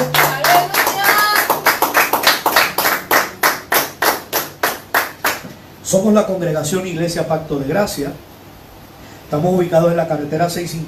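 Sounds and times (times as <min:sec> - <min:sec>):
audience clapping: 0:00.0 - 0:05.6
speech: 0:05.9 - 0:08.3, 0:09.3 - 0:10.8.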